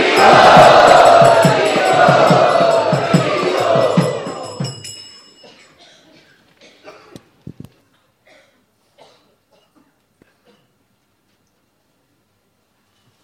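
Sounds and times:
audience chanting a welcome at a gathering in Bombay: 0.0 - 4.8.

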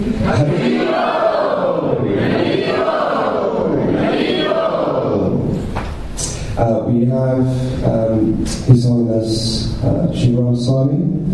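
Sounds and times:
speech: 0.0 - 0.8, 7.0 - 11.3
crowd chanting to open a show: 0.0 - 5.6.

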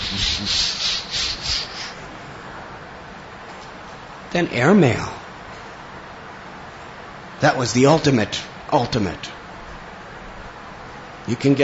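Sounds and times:
person imitating train chugging: 0.0 - 1.9
speech: 0.1 - 0.7, 4.3 - 5.2, 7.4 - 9.4, 11.3 - 11.6.

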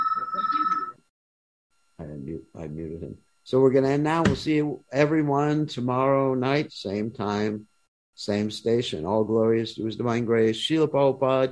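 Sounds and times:
phone ringtone in an online gathering: 0.0 - 1.0
speech: 2.5 - 11.4.

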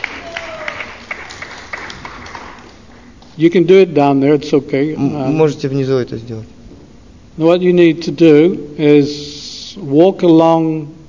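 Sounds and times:
audience applause for a volunteer: 0.0 - 3.3
speech: 3.4 - 6.5, 7.4 - 11.0.

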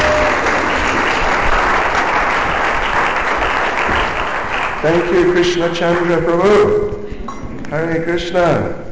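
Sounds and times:
audience applause for actors: 0.0 - 6.4
speech: 4.8 - 7.0, 7.7 - 8.8.

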